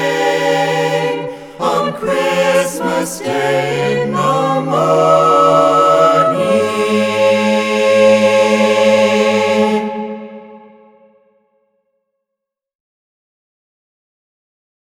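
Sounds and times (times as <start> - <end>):
Christmas carolers singing: 0.0 - 11.0.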